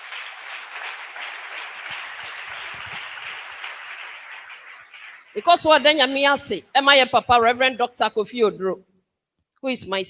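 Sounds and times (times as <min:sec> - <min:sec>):
crowd clapping: 0:00.0 - 0:06.3
speech: 0:05.4 - 0:08.9, 0:09.6 - 0:10.0.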